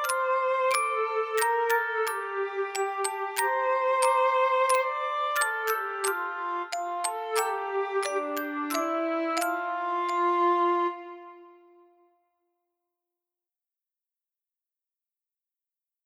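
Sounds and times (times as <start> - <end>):
instrumental Christmas carol: 0.0 - 12.3.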